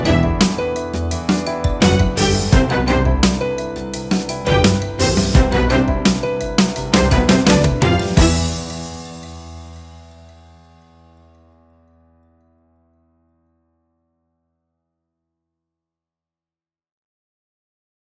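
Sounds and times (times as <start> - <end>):
medium tension music: 0.0 - 10.1.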